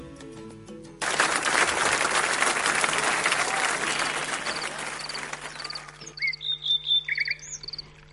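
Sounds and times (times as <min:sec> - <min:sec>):
applause: 0:01.0 - 0:06.1
small birds chirping: 0:04.5 - 0:08.1.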